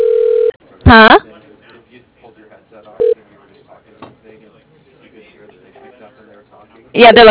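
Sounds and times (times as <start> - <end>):
telephone line tone while calling a lighting company: 0.0 - 0.6
recorded voice on the phone line: 0.8 - 7.2
speech: 0.9 - 1.2, 7.0 - 7.2.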